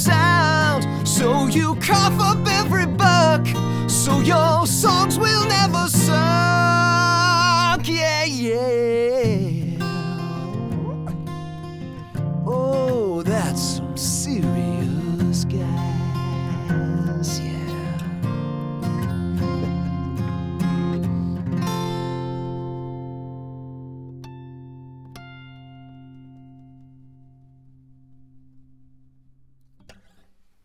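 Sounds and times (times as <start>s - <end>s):
vocals: 0.0s - 20.1s
miked guitar: 0.0s - 30.6s.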